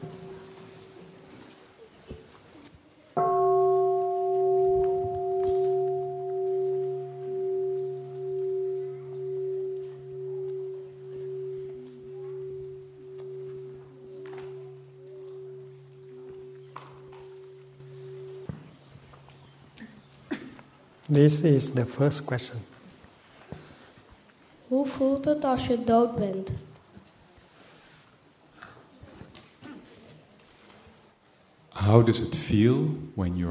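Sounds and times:
meditation bell ringing: 3.2s - 20.0s
speech: 21.1s - 22.8s, 25.2s - 26.7s, 32.0s - 33.4s.

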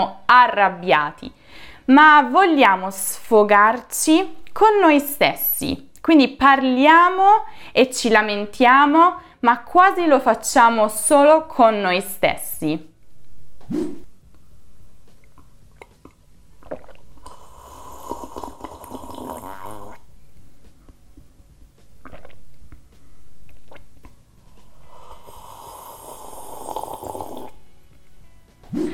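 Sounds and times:
speech: 0.0s - 12.9s, 13.7s - 14.0s
noisy drinking slurping: 15.8s - 20.0s, 22.0s - 22.8s, 23.5s - 27.6s.

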